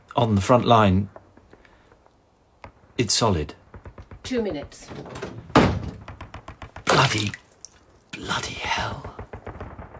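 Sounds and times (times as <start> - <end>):
speech: 0.2 - 1.2, 3.0 - 3.6, 4.2 - 5.4, 7.1 - 7.4, 8.2 - 9.2
wooden trap door opened in a cellar, audio drama effect: 4.8 - 6.1.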